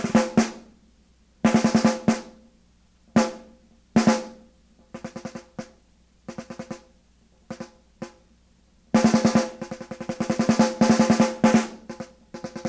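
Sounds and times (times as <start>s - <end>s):
snare drum: 0.0s - 0.7s, 1.5s - 2.4s, 3.2s - 4.4s, 5.0s - 6.9s, 7.5s - 8.2s, 9.0s - 12.6s.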